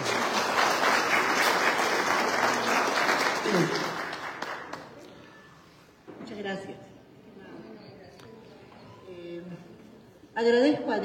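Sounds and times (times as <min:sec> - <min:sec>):
audience applause: 0:00.0 - 0:05.0
speech: 0:03.5 - 0:03.9, 0:10.4 - 0:11.0.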